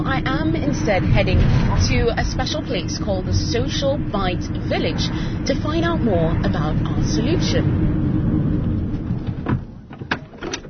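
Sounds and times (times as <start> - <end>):
low rumbling hum: 0.0 - 10.6
speech: 0.2 - 8.0
car door closing: 8.9 - 10.6.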